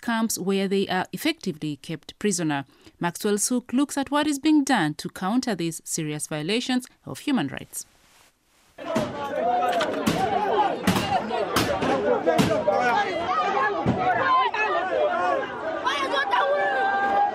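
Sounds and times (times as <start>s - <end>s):
speech: 0.1s - 8.0s
people wailing and crying in panic in Poloyafon: 8.8s - 17.3s.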